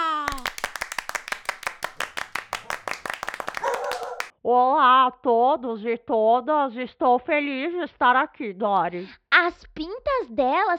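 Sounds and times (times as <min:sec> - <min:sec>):
audience clapping: 0:00.0 - 0:04.3
speech: 0:04.4 - 0:10.7.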